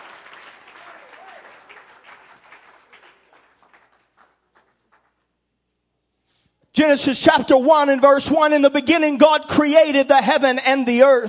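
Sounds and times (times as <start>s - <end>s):
audience clapping hands in praise: 0.0s - 5.3s
speech: 6.8s - 11.2s.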